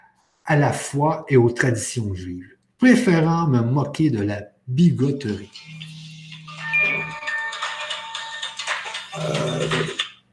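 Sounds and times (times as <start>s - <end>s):
speech: 0.5s - 5.9s, 9.2s - 10.0s
phone ringing with a bright electronic ringtone: 5.4s - 10.3s.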